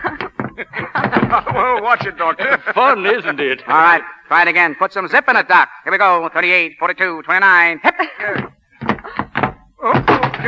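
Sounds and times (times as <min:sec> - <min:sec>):
person falling over a coffee table: 0:00.0 - 0:02.3, 0:08.3 - 0:10.4
laughter: 0:00.0 - 0:04.3, 0:07.8 - 0:09.3
speech: 0:00.7 - 0:08.5.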